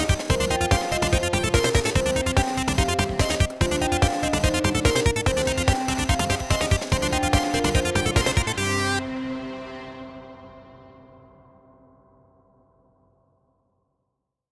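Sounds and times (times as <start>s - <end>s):
instrumental music: 0.0s - 11.6s.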